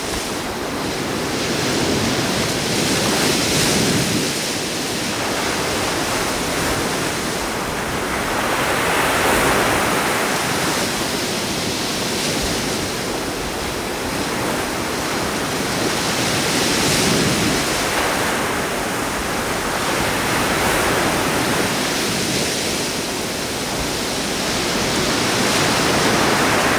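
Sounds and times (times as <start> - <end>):
ocean waves: 0.0 - 26.7.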